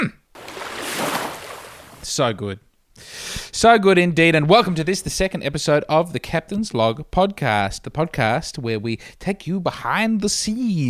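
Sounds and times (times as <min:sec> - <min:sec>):
ocean wave sound effect: 0:00.4 - 0:02.1
speech: 0:02.1 - 0:10.8.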